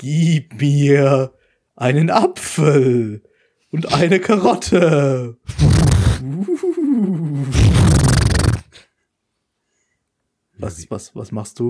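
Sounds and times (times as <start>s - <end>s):
speech: 0.0s - 8.9s, 10.6s - 11.6s
person imitating horse snorting: 5.5s - 8.9s.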